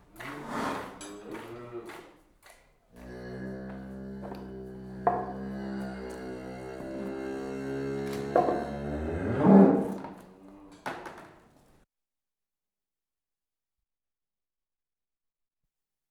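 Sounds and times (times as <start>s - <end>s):
cow mooing while being hand-milked: 0.2s - 2.0s, 2.9s - 11.0s.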